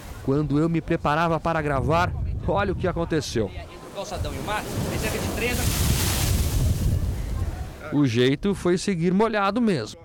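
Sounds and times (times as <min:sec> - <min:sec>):
speech: 0:00.2 - 0:06.1, 0:07.9 - 0:10.0
ocean waves crashing onto the shore: 0:03.2 - 0:08.0.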